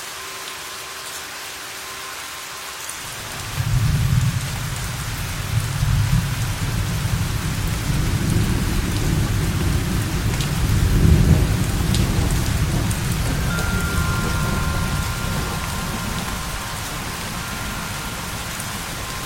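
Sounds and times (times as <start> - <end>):
steady rain: 0.0 - 19.2
deep rolling rumble of thunder: 3.4 - 19.2
faint thin wind chime tones: 12.7 - 19.2.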